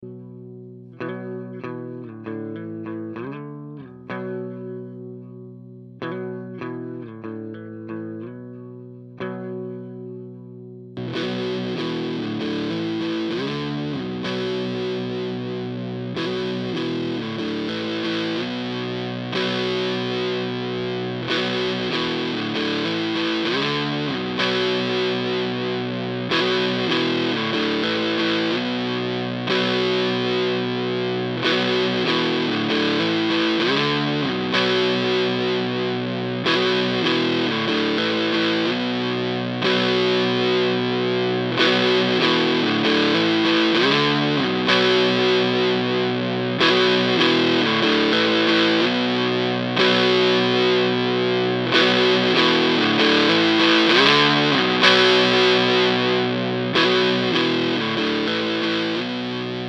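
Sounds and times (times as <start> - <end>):
EQD Plumes mode 3 tone: 0.0 - 59.6.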